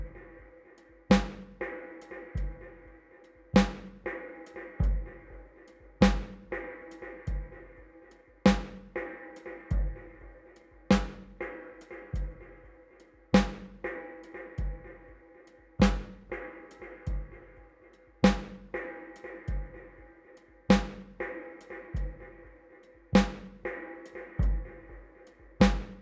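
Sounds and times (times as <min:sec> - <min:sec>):
drum: 0:00.0 - 0:00.5, 0:01.1 - 0:02.9, 0:03.6 - 0:04.2, 0:04.8 - 0:07.8, 0:08.5 - 0:09.1, 0:09.7 - 0:12.7, 0:13.4 - 0:15.2, 0:15.8 - 0:20.0, 0:20.7 - 0:22.5, 0:23.2 - 0:25.9.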